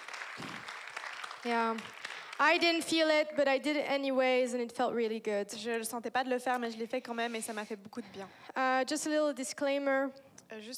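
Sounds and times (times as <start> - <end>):
audience applause: 0.0 - 2.5
speech: 1.4 - 10.7.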